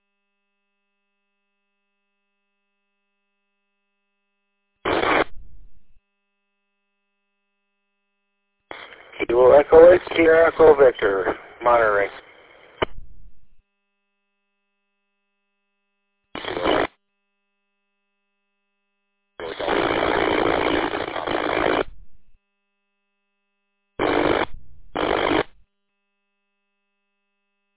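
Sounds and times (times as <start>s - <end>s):
faint steady whine: 0.0s - 27.7s
radio transmission scatter static bursts: 4.9s - 6.0s, 8.7s - 13.6s, 16.4s - 16.9s, 19.4s - 22.4s, 24.0s - 25.6s
speech: 9.2s - 12.2s.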